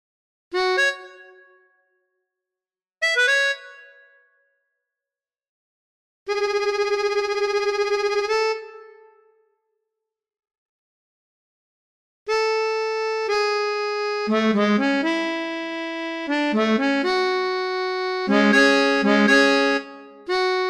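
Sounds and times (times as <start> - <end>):
tango played on melodica: 0.6 - 1.4, 3.0 - 4.0, 6.3 - 8.8, 12.3 - 20.6.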